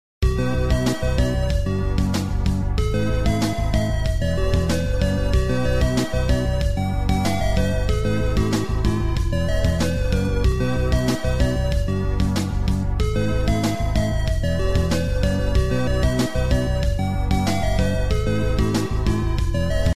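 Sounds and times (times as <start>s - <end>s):
ringtone: 0.2s - 19.9s.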